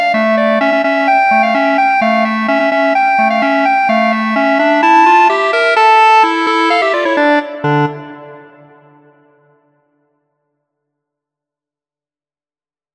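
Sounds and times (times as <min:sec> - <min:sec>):
clarinet duet: 0:00.0 - 0:08.8.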